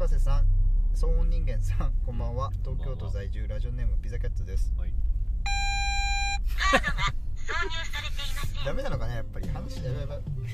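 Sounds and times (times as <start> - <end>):
low constant rumble: 0.0 - 10.5
speech: 1.0 - 5.2, 6.5 - 10.5
car warning beep: 5.5 - 6.6.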